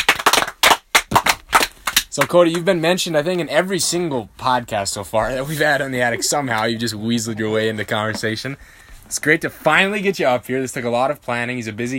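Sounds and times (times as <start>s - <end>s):
round of applause: 0.0s - 2.1s
speech: 2.2s - 11.9s.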